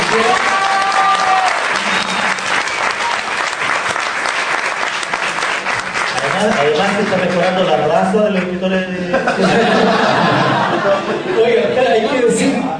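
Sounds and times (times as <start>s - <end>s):
audience applause: 0.0s - 8.2s
speech: 7.1s - 12.7s
laughter: 8.8s - 12.3s.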